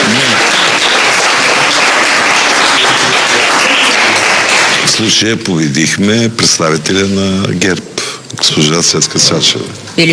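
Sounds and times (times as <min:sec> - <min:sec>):
audience applause: 0:00.0 - 0:05.3
speech: 0:05.0 - 0:10.1.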